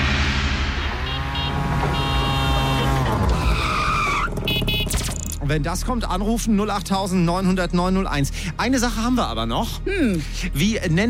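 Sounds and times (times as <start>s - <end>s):
tuk-tuk auto rickshaw engine driving and revving: 0.0s - 5.4s
speech: 5.5s - 11.0s.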